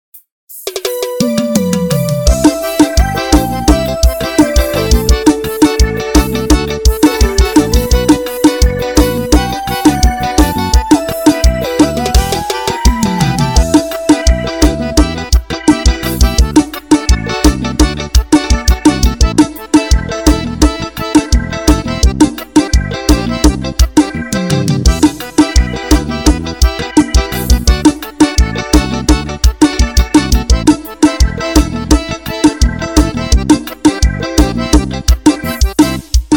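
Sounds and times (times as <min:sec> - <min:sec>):
keyboard playback: 0:00.6 - 0:36.3.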